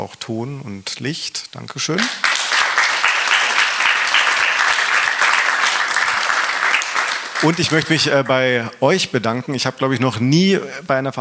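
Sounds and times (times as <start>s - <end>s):
speech: 0.0s - 2.4s, 7.4s - 11.1s
crowd clapping: 2.0s - 8.6s.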